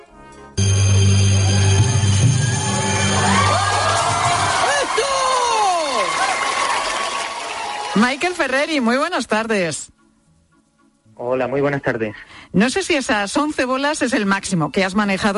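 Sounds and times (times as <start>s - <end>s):
audience shouts at juggling performance: 1.3s - 8.5s
speech: 8.0s - 10.0s, 11.2s - 15.3s.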